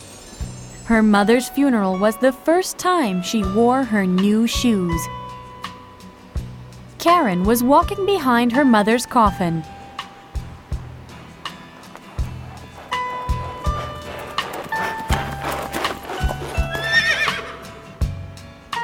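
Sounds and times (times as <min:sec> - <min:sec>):
speech: 0:00.9 - 0:05.2, 0:07.0 - 0:09.8
horse-drawn carriage hooves clip-clopping: 0:07.6 - 0:18.2
horse whinnying: 0:11.8 - 0:17.9.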